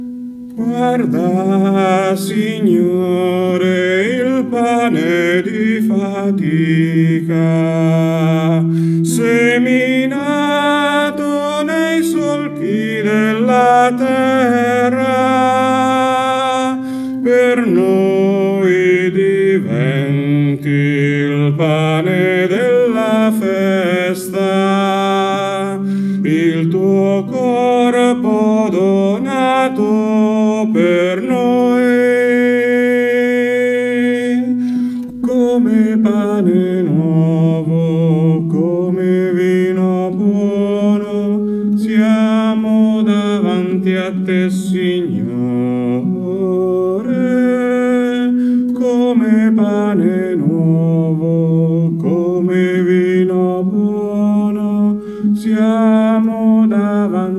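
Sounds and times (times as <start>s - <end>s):
men singing: 0.6s - 57.3s.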